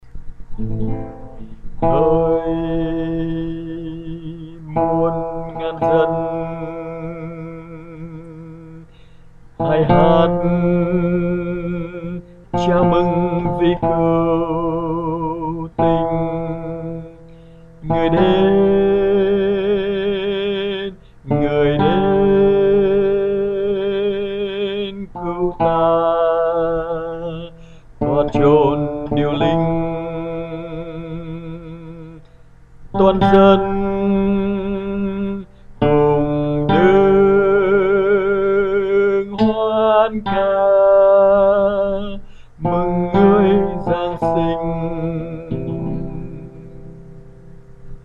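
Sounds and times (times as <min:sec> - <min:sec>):
alto singing a Christmas hymn: 0:00.0 - 0:48.0.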